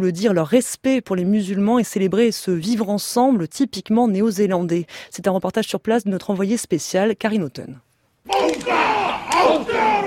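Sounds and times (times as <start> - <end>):
speech: 0.0 - 10.0
crowd performing a Maori haka as a tribute to attack victims in New Zealand: 8.3 - 10.0.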